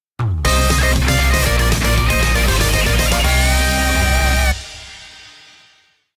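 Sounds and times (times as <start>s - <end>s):
victory theme music: 0.4s - 5.1s.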